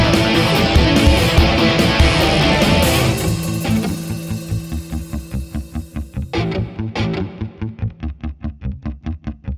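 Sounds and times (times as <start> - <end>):
energetic electronic music for a login main screen: 0.0 - 8.1.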